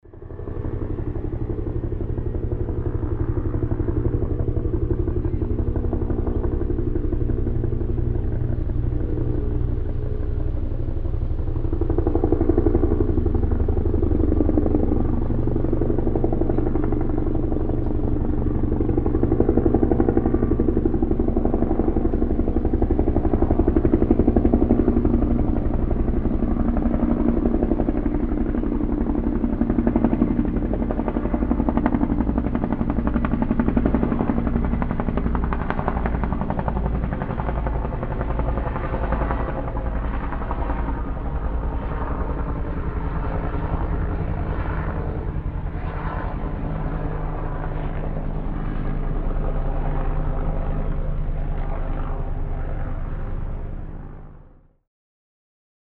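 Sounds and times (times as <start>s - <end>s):
helicopter flying over lake: 0.0s - 54.8s.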